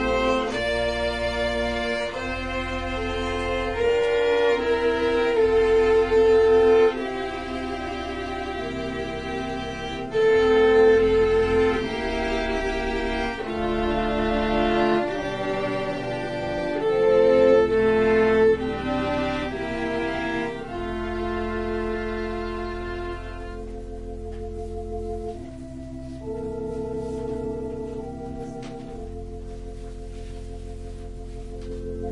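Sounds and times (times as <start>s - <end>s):
cello in a prelude: 0.0s - 32.1s
organ in a prelude: 0.0s - 32.1s
violin in a prelude: 0.0s - 32.1s.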